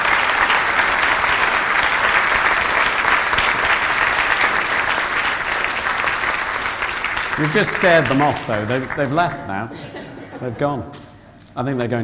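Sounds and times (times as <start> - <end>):
audience clapping: 0.0 - 9.7
laughter: 7.4 - 11.0
speech: 7.4 - 11.0, 11.6 - 12.0.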